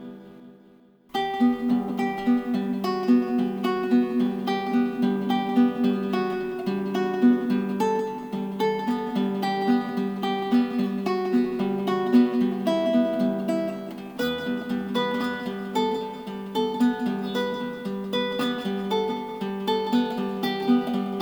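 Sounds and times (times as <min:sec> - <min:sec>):
guitar fingerpicking: 0:00.0 - 0:21.2.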